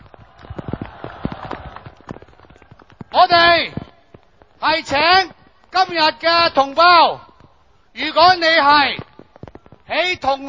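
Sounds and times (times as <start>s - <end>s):
crowd applause at outdoor rally: 0.0s - 3.1s
speech: 3.1s - 3.8s, 4.6s - 7.3s, 8.0s - 9.0s, 9.9s - 10.4s.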